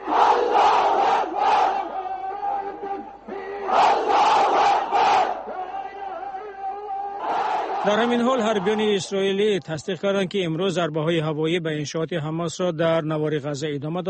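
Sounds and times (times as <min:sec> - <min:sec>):
crowd of protesters chanting slogans: 0:00.0 - 0:08.9
speech: 0:07.9 - 0:14.0.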